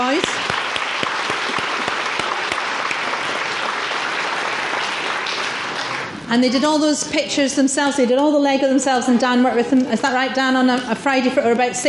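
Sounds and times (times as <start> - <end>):
audience applause: 0.0 - 6.3
speech: 6.3 - 11.8.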